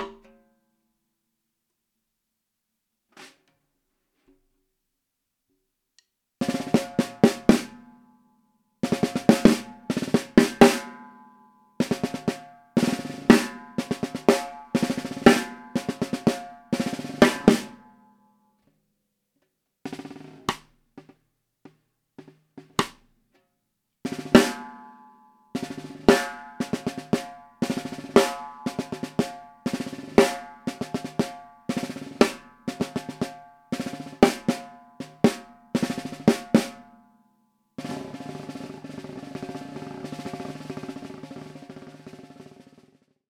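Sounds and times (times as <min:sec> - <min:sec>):
Tama LMB1465 drum: 0:00.0 - 0:00.3, 0:06.4 - 0:07.9, 0:08.8 - 0:11.0, 0:11.8 - 0:17.9, 0:19.9 - 0:23.2, 0:24.1 - 0:24.9, 0:25.6 - 0:36.9, 0:37.8 - 0:43.2.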